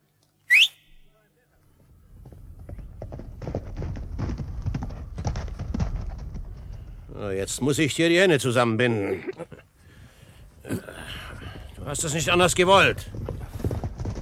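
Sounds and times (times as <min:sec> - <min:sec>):
sharp rising whistle calling a horse: 0:00.5 - 0:01.1
hooves of an approaching horse clattering: 0:01.8 - 0:07.9, 0:11.2 - 0:14.2
speech: 0:07.2 - 0:09.6, 0:11.9 - 0:13.2.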